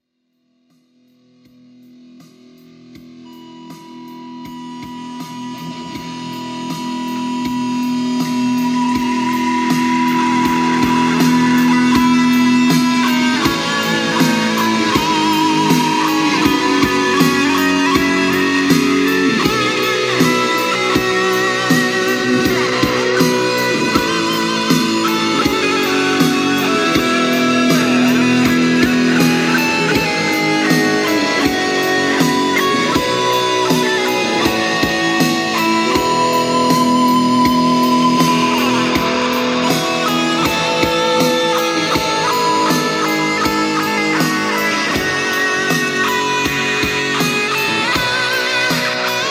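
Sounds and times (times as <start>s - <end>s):
rock version of a national anthem: 1.6s - 49.2s.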